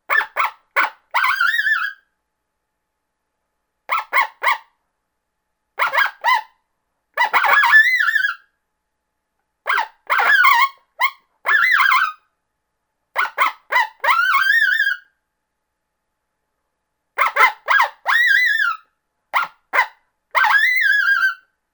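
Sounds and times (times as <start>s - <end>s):
coyote challenge barks and yowls: 0.1s - 2.0s, 3.9s - 4.7s, 5.8s - 6.5s, 7.2s - 8.4s, 9.7s - 12.2s, 13.2s - 15.1s, 17.2s - 21.4s.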